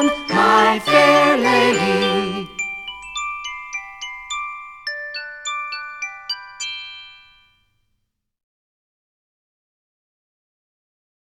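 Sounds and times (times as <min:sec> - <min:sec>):
English children's song: 0:00.0 - 0:07.4.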